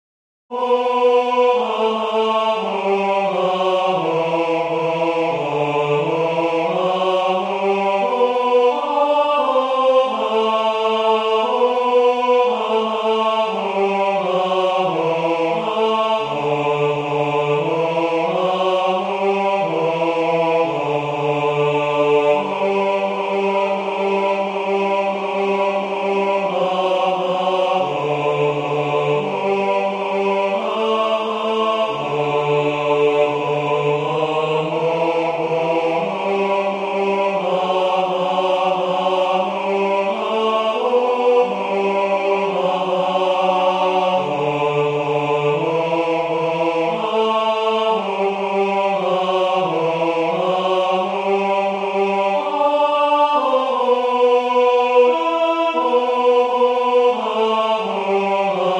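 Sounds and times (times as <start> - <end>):
tenor singing a hymn: 0.5 - 58.7.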